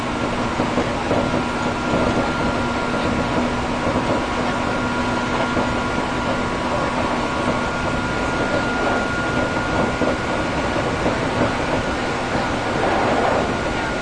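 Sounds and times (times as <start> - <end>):
Hankyu 3300 train motor: 0.0 - 13.9.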